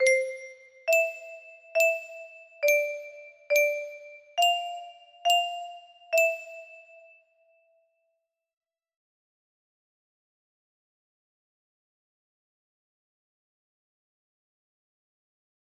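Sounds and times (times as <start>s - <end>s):
music box melody: 0.0s - 7.2s.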